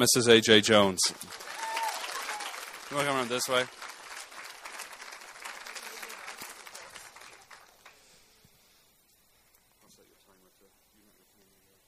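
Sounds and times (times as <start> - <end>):
speech: 0.0 - 1.5, 2.9 - 3.9
audience applause: 1.0 - 8.3.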